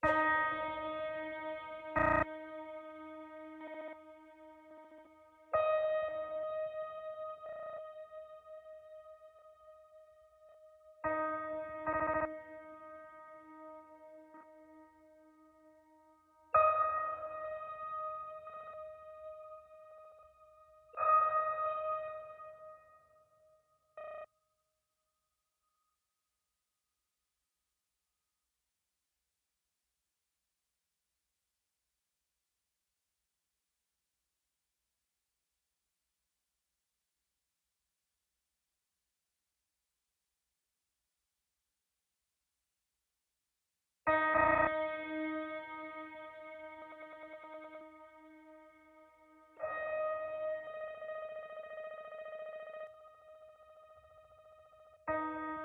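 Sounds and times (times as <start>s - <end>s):
piano: 0.0s - 24.3s, 44.1s - 55.6s.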